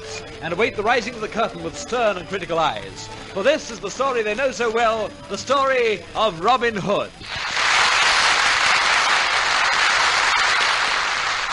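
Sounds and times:
speech: 0:00.4 - 0:07.4
theatre audience applause: 0:07.2 - 0:11.5.

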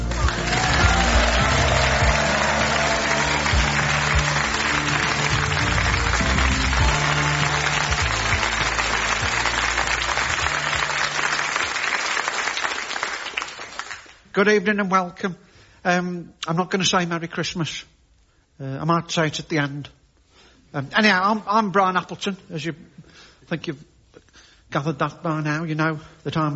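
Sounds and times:
audience applause greeting a performer presenting his Christmas single: 0:00.0 - 0:14.2
speech: 0:14.4 - 0:17.9, 0:18.6 - 0:20.0, 0:20.7 - 0:23.9, 0:24.7 - 0:26.5.

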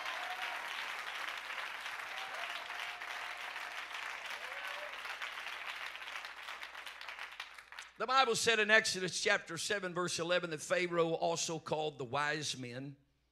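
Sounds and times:
audience clapping hands: 0:00.0 - 0:08.1
speech: 0:08.0 - 0:13.0.

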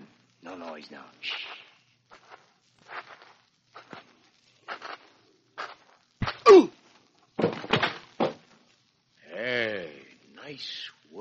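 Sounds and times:
speech: 0:00.6 - 0:01.6
groan-like vocal sound: 0:06.4 - 0:06.8
blows struck with a rifle butt: 0:07.4 - 0:08.4.

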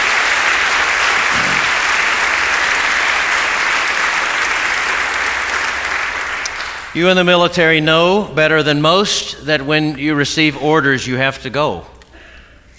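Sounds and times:
crowd applauding: 0:00.0 - 0:07.0
speech: 0:07.0 - 0:11.9.

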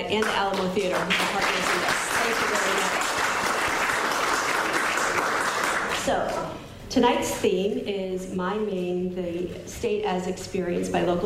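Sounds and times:
speech: 0:00.0 - 0:03.0, 0:06.0 - 0:11.2
round of applause: 0:00.1 - 0:06.2.

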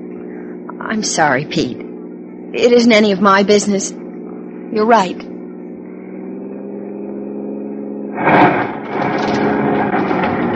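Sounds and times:
car engine on a deserted shortcut road driving with a flat tire: 0:00.0 - 0:10.5
speech: 0:00.8 - 0:01.9, 0:02.5 - 0:04.0, 0:04.7 - 0:05.3.

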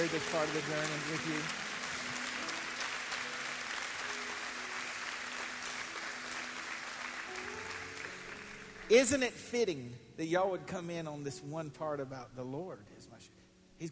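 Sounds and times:
speech: 0:00.0 - 0:01.7, 0:08.9 - 0:13.9
audience applause: 0:00.0 - 0:09.2.

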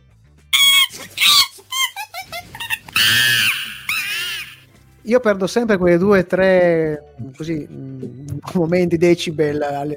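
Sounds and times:
monkey screech sound effect: 0:00.6 - 0:04.7
speech: 0:05.1 - 0:09.9.

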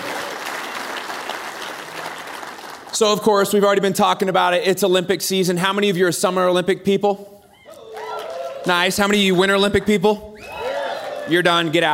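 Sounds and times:
crowd applause: 0:00.0 - 0:03.0, 0:07.7 - 0:09.0, 0:10.4 - 0:11.7
speech: 0:03.0 - 0:07.4, 0:08.6 - 0:10.3, 0:11.3 - 0:11.9.

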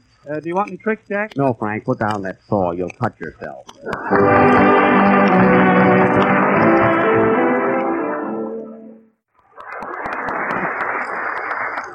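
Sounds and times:
speech: 0:00.2 - 0:05.6
studio audience applause: 0:03.9 - 0:08.2, 0:09.6 - 0:11.9.

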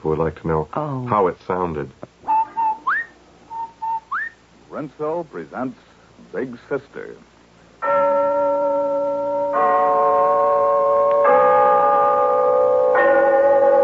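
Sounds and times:
speech: 0:00.0 - 0:02.1, 0:04.7 - 0:08.2
town hall clock bell chiming: 0:07.8 - 0:13.8.

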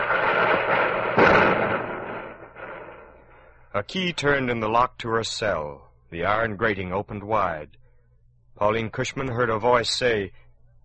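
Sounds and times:
Union artillery fire booming against Confederate positions at Shelbyville: 0:00.0 - 0:03.6
speech: 0:03.8 - 0:07.8, 0:08.6 - 0:10.4.

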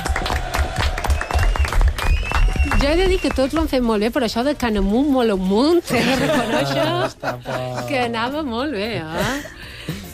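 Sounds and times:
applause after a team performance contest at a festive event: 0:00.0 - 0:03.6
speech: 0:02.8 - 0:10.0
laughter: 0:05.9 - 0:08.1, 0:09.1 - 0:10.1.

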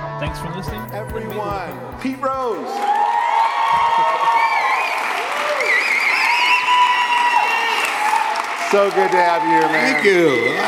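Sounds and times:
speech: 0:00.2 - 0:03.0, 0:08.7 - 0:10.6
live audience applause: 0:02.5 - 0:10.6.

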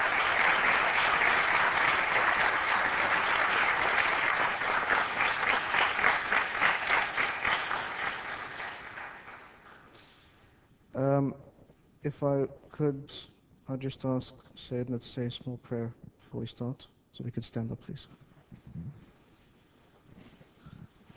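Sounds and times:
audience applause: 0:00.0 - 0:09.9
speech: 0:12.0 - 0:18.2.

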